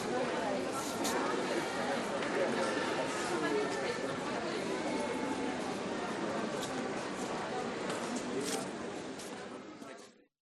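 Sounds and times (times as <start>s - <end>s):
train station ambience in the Netherlands: 0.0s - 10.3s.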